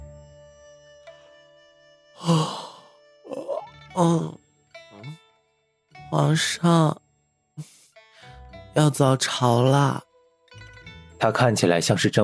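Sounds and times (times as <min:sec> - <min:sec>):
man murmuring sleepily: 0:02.2 - 0:04.4
man yawning drowsily while rubbing his eyes: 0:02.2 - 0:04.4
speech: 0:04.0 - 0:04.4, 0:06.1 - 0:07.0, 0:08.8 - 0:10.1, 0:11.2 - 0:12.2.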